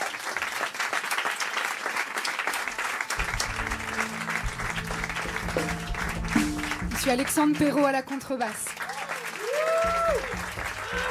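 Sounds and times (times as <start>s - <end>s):
applause: 0.0s - 11.0s
speech: 7.0s - 8.7s, 9.8s - 11.0s.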